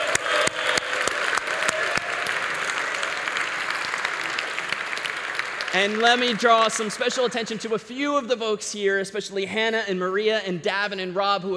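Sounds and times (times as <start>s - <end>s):
audience applause: 0.0s - 7.9s
speech: 5.8s - 11.5s.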